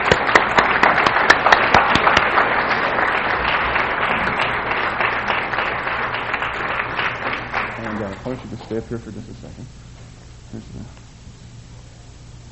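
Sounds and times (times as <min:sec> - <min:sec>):
audience applause: 0:00.0 - 0:08.6
speech: 0:08.3 - 0:09.9, 0:10.5 - 0:11.0.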